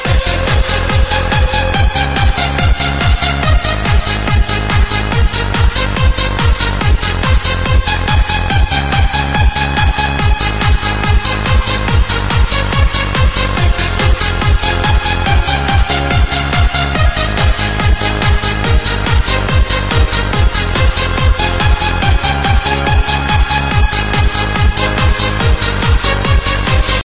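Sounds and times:
trance remix: 0.0s - 27.0s.

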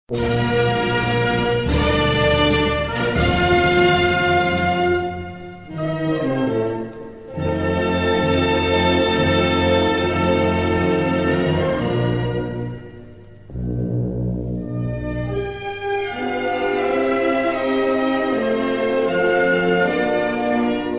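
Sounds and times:
national anthem: 0.1s - 20.9s.

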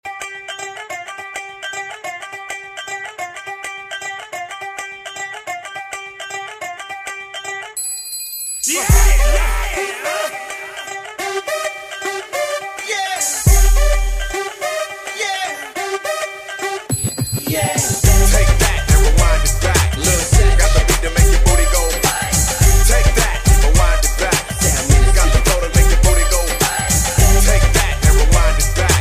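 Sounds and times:
Punjabi hip hop ringtone: 7.8s - 14.6s, 16.5s - 29.0s.

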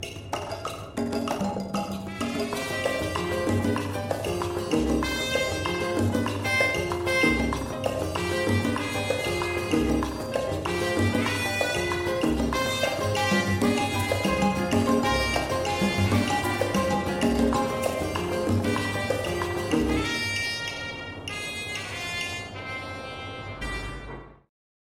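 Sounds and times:
jukebox salsa music: 0.0s - 24.5s.

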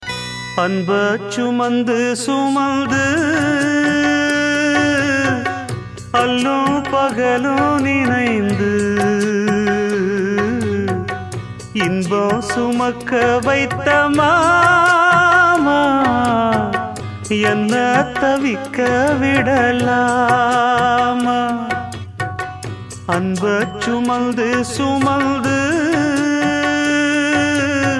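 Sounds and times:
sad Tamil music: 0.0s - 27.9s.

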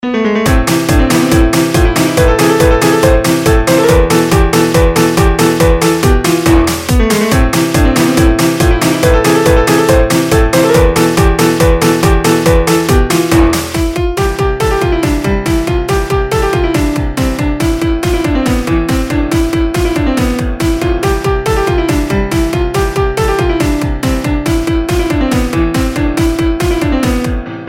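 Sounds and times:
classical techno music: 0.0s - 27.6s.

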